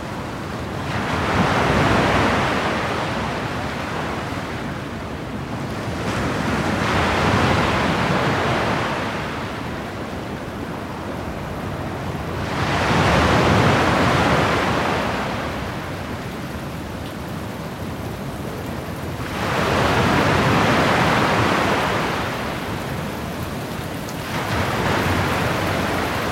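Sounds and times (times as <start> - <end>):
rain: 0.0 - 26.3.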